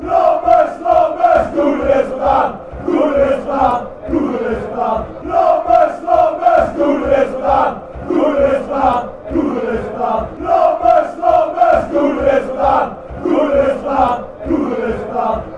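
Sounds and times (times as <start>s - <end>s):
fans chanting: 0.0s - 15.5s.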